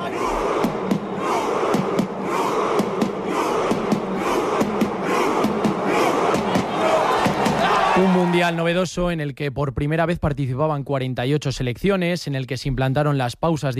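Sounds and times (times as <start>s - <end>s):
drum struck by players: 0.0s - 8.4s
football fans' chant at the World Cup: 0.0s - 8.4s
speech: 8.4s - 13.7s.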